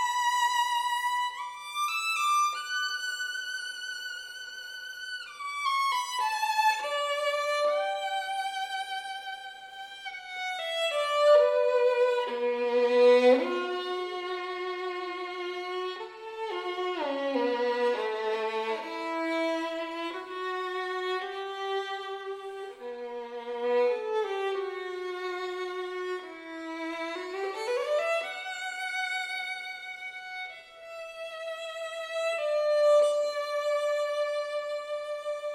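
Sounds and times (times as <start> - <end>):
violin: 0.0 - 35.5.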